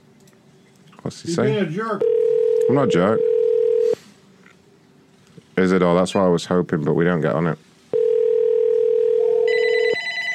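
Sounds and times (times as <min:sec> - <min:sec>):
speech: 0:01.0 - 0:03.3, 0:05.6 - 0:07.7
house telephone ringing with a steady electronic tone: 0:02.0 - 0:04.0, 0:08.0 - 0:10.3.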